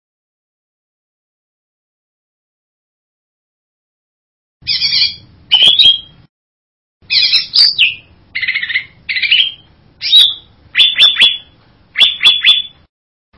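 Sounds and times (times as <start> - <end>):
bird buzzy whistled song: 4.6 - 6.3, 7.0 - 12.9.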